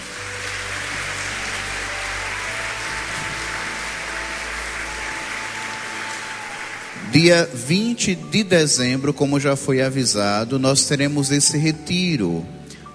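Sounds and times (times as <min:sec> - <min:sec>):
audience applause: 0:00.0 - 0:08.2
speech: 0:07.1 - 0:12.6.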